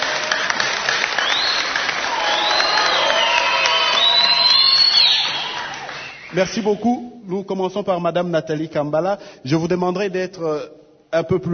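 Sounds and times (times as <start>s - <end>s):
audience applauding for itself: 0.0s - 6.7s
audience whoops and shouts: 1.2s - 6.2s
speech: 6.4s - 11.5s.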